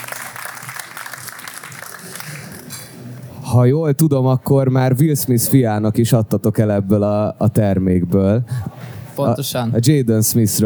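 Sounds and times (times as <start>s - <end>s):
audience applause: 0.0s - 2.9s
speech: 3.6s - 10.6s.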